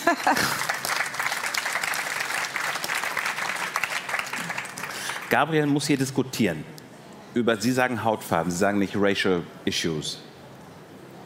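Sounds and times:
audience clapping after a reading: 0:00.0 - 0:05.7
speech: 0:00.1 - 0:00.6, 0:05.3 - 0:06.7, 0:07.4 - 0:10.3.

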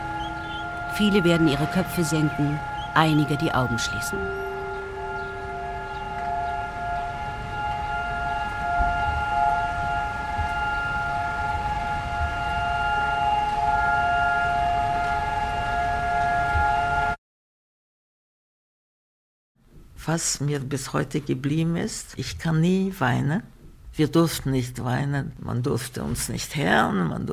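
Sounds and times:
memorial siren wailing over city square: 0:00.0 - 0:17.2
speech: 0:01.0 - 0:04.6, 0:20.1 - 0:27.3.

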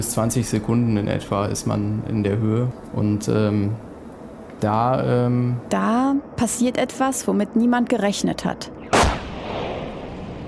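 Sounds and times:
speech: 0:00.0 - 0:03.9, 0:04.6 - 0:09.2
lightning striking an aircraft, explosive bang: 0:08.8 - 0:10.4.

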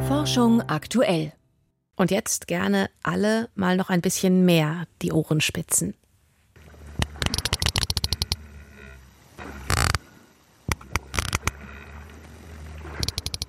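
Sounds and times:
speech: 0:00.2 - 0:01.4, 0:02.0 - 0:06.0
sperm whale clicks: 0:07.0 - 0:08.5, 0:09.4 - 0:10.1, 0:10.7 - 0:13.4.

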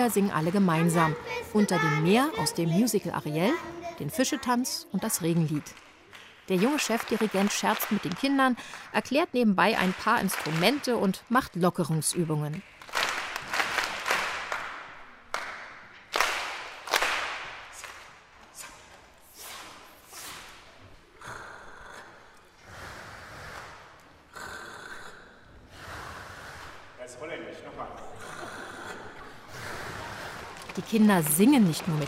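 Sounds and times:
speech: 0:00.0 - 0:05.8, 0:06.5 - 0:12.7, 0:31.0 - 0:32.0
group of children clapping in rhythmic body percussion: 0:05.2 - 0:09.1, 0:09.7 - 0:11.2, 0:11.9 - 0:18.1, 0:29.2 - 0:32.0.

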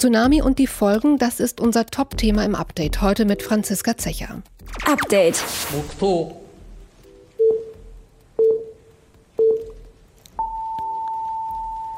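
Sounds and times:
speech: 0:00.0 - 0:06.4
time signal beep for 14.46 Japanese time: 0:07.1 - 0:08.8, 0:09.4 - 0:09.8, 0:10.4 - 0:11.9.

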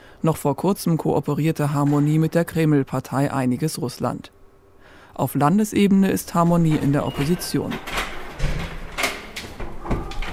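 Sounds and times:
speech: 0:00.2 - 0:04.4, 0:05.2 - 0:08.7
parliament meeting hall door opening: 0:01.7 - 0:02.6, 0:06.2 - 0:10.3.

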